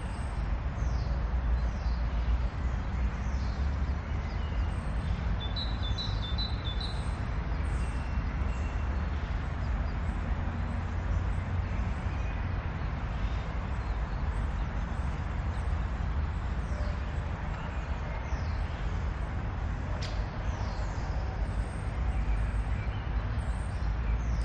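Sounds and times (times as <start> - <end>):
early morning park ambience: 0.0 - 24.4.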